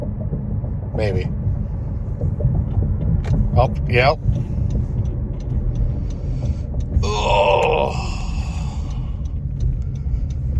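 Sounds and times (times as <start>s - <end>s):
car arriving with a low steady engine rumble: 0.0s - 10.5s
speech: 1.0s - 1.4s, 3.6s - 4.5s, 7.2s - 8.2s.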